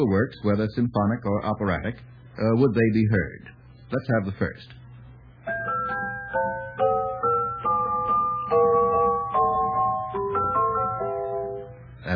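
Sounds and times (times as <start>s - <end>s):
speech: 0.0s - 4.8s
faint low hum: 0.0s - 12.1s
celeste playing a melody: 5.5s - 11.8s.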